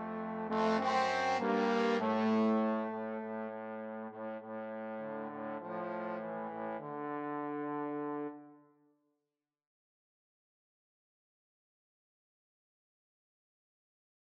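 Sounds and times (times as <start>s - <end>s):
trombone trio playing: 0.0s - 8.3s.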